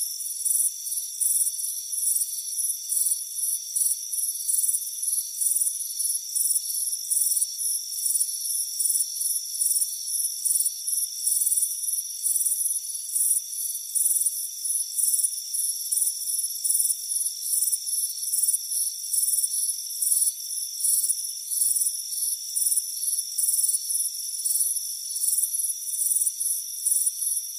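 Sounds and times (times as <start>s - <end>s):
cricket chirps: 0.0s - 27.5s.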